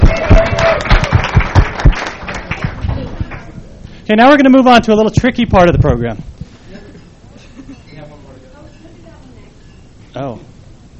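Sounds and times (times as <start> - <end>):
audience applause: 0.0 - 3.6
speech: 4.1 - 6.3, 10.2 - 10.5.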